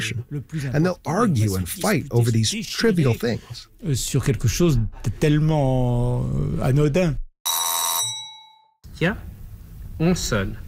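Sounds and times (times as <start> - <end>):
speech: 0.0 - 7.2, 9.0 - 9.3, 10.0 - 10.6
doorbell ringing: 7.4 - 8.8.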